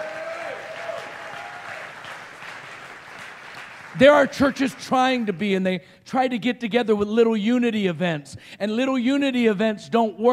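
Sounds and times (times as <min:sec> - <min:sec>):
audience applause: 0:00.0 - 0:05.4
speech: 0:03.9 - 0:10.3.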